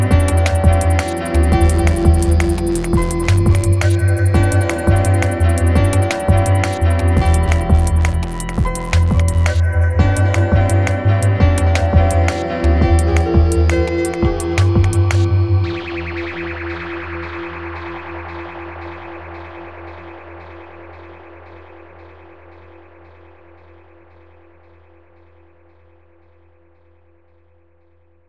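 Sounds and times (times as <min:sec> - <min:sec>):
salsa in dub, samba remix: 0:00.0 - 0:15.8.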